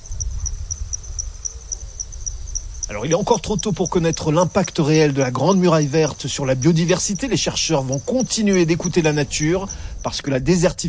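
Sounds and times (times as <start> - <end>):
night insects chirping in the Sahel: 0.0 - 10.8
speech: 2.9 - 10.8.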